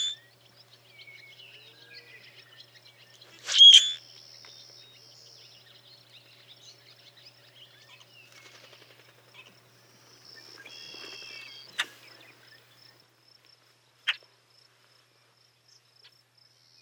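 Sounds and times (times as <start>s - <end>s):
bronzed Common Grackle Quiscalus quiscula versicolor calling chacks, whistles and harsh calls: 0.0s - 12.8s.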